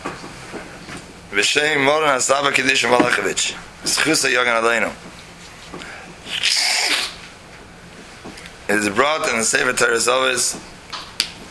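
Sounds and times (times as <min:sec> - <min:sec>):
speech: 0:01.3 - 0:05.1, 0:08.7 - 0:10.7
person with allergies snorting: 0:06.2 - 0:07.2.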